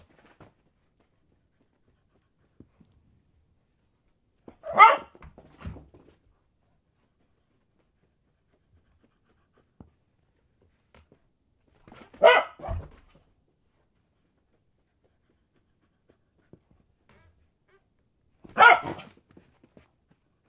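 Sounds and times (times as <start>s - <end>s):
dog barking while playing fetch: 4.6s - 5.2s, 12.2s - 12.9s, 18.5s - 19.1s.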